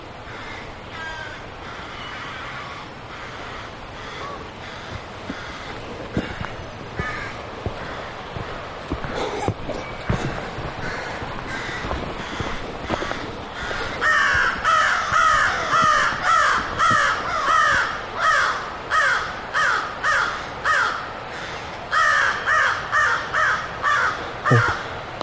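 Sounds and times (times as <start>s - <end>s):
crows cawing: 0.3s - 25.0s
rustling: 4.0s - 18.4s.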